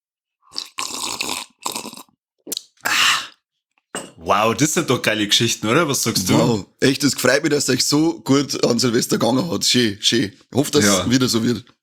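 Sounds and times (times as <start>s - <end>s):
slurping coffee: 0.5s - 3.4s
speech: 4.2s - 11.8s.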